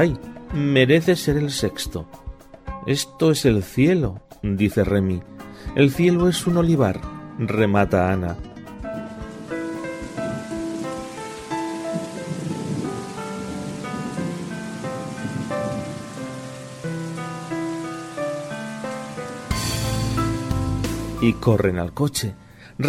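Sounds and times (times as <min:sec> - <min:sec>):
speech: 0:00.0 - 0:02.2, 0:02.8 - 0:08.5, 0:21.3 - 0:22.8
distant thunder rumble: 0:08.9 - 0:16.6
steady rain: 0:08.9 - 0:22.8.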